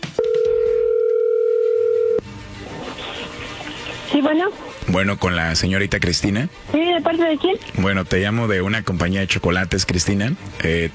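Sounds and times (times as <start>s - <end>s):
telephone dial tone: 0.2s - 2.2s
speech: 4.2s - 10.9s.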